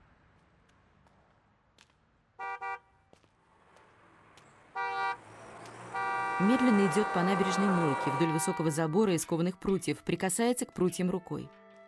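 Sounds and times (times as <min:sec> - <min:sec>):
low steady traffic hum of passenger cars driving slowly past: 0:00.0 - 0:09.9
car horns on a street: 0:02.4 - 0:03.0, 0:04.7 - 0:09.3
speech: 0:06.4 - 0:11.6.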